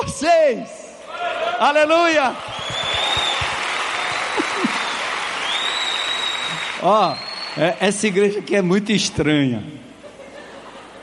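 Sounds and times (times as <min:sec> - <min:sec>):
speech: 0:00.1 - 0:02.5, 0:06.8 - 0:09.8
audience applauding: 0:02.4 - 0:08.7
laughter: 0:04.1 - 0:05.1, 0:09.9 - 0:11.0.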